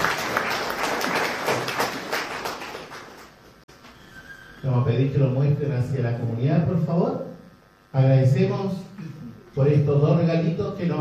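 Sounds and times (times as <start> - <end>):
audience applauding: 0.0 - 3.6
speech: 4.6 - 7.2, 7.9 - 10.9.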